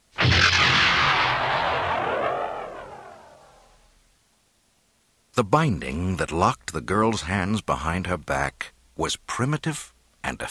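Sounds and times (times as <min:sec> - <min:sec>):
explosive latches firing as life pod ejects: 0:00.1 - 0:03.6
speech: 0:05.4 - 0:10.5.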